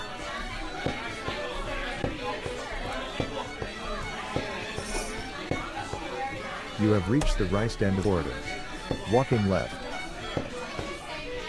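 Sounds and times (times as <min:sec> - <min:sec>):
restaurant crowd chatter in a video game: 0:00.0 - 0:11.4
speech: 0:06.8 - 0:08.5, 0:09.1 - 0:09.8
footstep-like thumps in a video game: 0:07.2 - 0:11.0.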